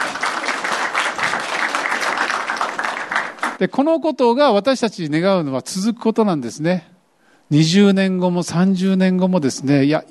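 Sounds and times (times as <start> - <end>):
crowd applauding: 0.0 - 3.6
speech: 3.6 - 10.0.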